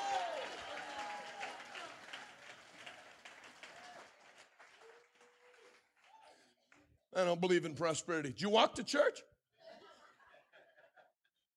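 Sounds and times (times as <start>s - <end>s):
audience shouting: 0.0s - 1.9s
audience clapping: 0.0s - 7.0s
speech: 7.2s - 9.3s
laughter: 9.6s - 11.4s.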